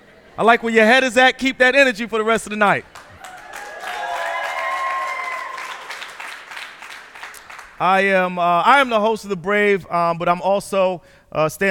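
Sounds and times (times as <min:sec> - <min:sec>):
speech: 0:00.4 - 0:02.9, 0:07.8 - 0:11.7
audience clapping: 0:02.8 - 0:08.0
whistles and cheers: 0:03.2 - 0:06.3.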